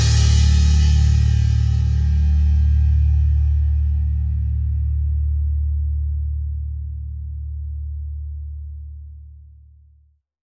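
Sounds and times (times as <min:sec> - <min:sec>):
drums: 0:00.0 - 0:05.1
bass: 0:00.0 - 0:10.3.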